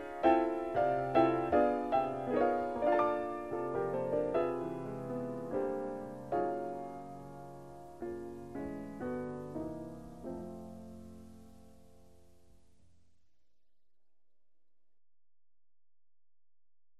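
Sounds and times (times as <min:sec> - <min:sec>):
waltz music: 0:00.0 - 0:12.5.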